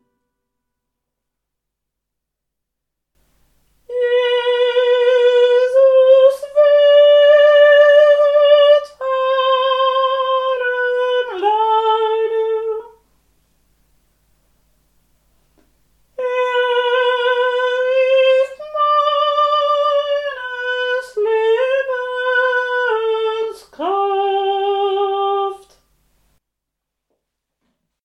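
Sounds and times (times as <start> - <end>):
sopranos singing: 3.9 - 13.0, 16.2 - 25.8.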